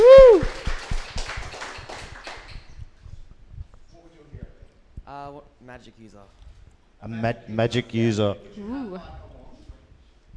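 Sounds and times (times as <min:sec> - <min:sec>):
audience round of applause: 0:00.0 - 0:02.7
speech: 0:05.5 - 0:09.3.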